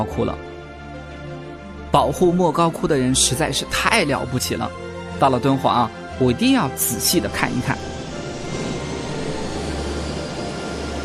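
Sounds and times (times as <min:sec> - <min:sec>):
speech: 0:00.0 - 0:00.5, 0:01.9 - 0:07.9
airplane landing at Dunhuang Airport: 0:04.2 - 0:11.0.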